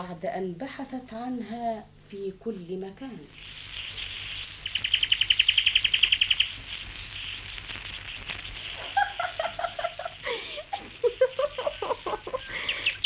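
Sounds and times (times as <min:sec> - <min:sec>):
speech: 0:00.0 - 0:03.6
small bird chirping in a garden: 0:03.1 - 0:09.5, 0:11.0 - 0:13.0
laughter: 0:08.9 - 0:12.7.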